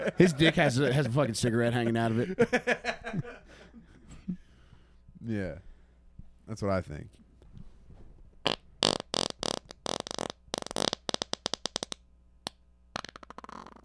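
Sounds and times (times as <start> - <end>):
laughter: 0.0 - 1.2, 1.9 - 4.4
speech: 0.0 - 3.2, 5.3 - 5.7, 6.5 - 7.2
loud buzzing and sputtering farts: 8.4 - 12.0, 12.9 - 13.8.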